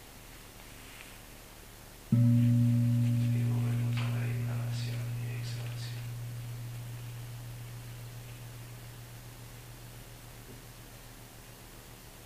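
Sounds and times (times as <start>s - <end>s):
gong ringing: 2.1s - 10.9s.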